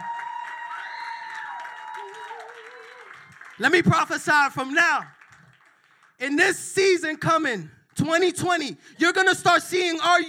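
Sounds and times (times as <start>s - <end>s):
audience applause: 0.0s - 6.2s
speech: 3.6s - 5.2s, 6.2s - 10.2s.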